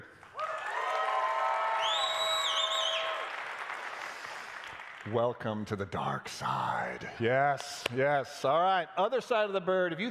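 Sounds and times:
live crowd applauding: 0:00.0 - 0:05.2
sustained whooping cheers: 0:00.4 - 0:03.4
speech: 0:05.0 - 0:10.0.

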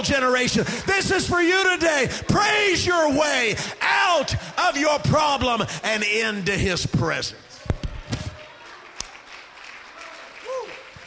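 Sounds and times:
speech: 0:00.0 - 0:07.5
audience hand clapping in praise: 0:07.8 - 0:11.0.

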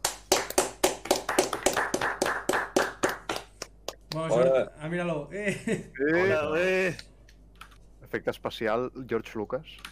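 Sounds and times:
applause for guest: 0:00.0 - 0:03.9
speech: 0:04.2 - 0:07.1, 0:08.1 - 0:09.9.

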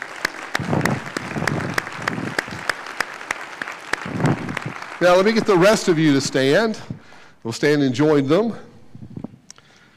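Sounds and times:
audience applause: 0:00.0 - 0:06.4
speech: 0:05.0 - 0:08.7.

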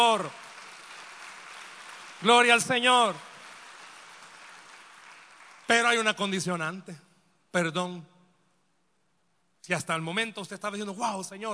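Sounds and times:
speech: 0:00.0 - 0:00.4, 0:02.2 - 0:03.3, 0:05.7 - 0:08.1, 0:09.6 - 0:11.5
audience applause: 0:00.0 - 0:06.0.

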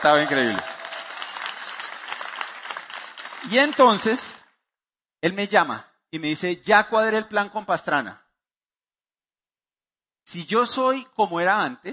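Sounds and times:
speech: 0:00.0 - 0:00.7, 0:03.4 - 0:04.4, 0:05.2 - 0:08.2, 0:10.3 - 0:11.9
audience applause: 0:00.0 - 0:04.2.

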